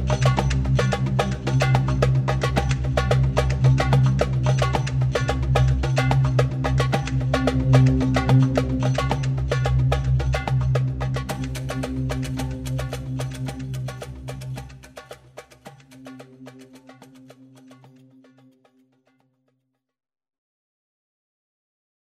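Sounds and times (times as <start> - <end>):
ambience in Kurdistan: 0.0 - 15.1.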